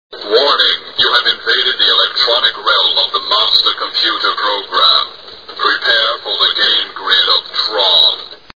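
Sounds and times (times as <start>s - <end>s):
people: 0.2s - 8.4s.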